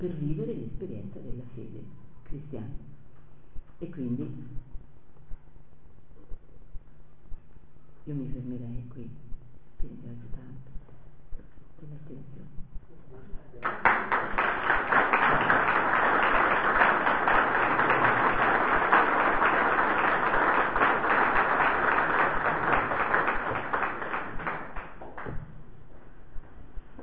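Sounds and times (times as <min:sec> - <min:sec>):
speech: 0:00.0 - 0:03.0, 0:03.8 - 0:04.6, 0:08.0 - 0:10.7
audience applause: 0:13.6 - 0:25.4.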